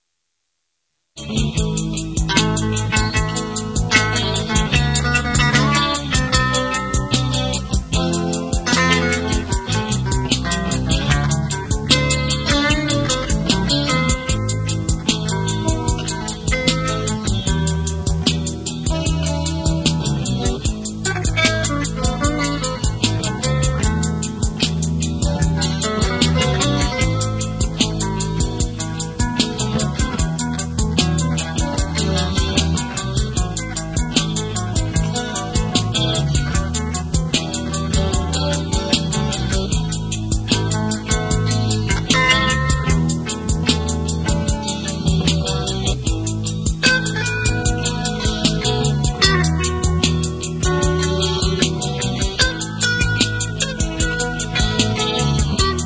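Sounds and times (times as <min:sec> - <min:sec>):
clean guitar: 0:01.2 - 0:55.8.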